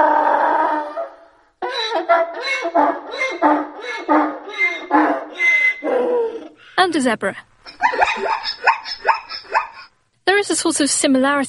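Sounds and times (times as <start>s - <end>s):
donkey braying: 0.0s - 6.6s, 7.7s - 9.9s
speech: 6.9s - 7.5s, 10.4s - 11.4s.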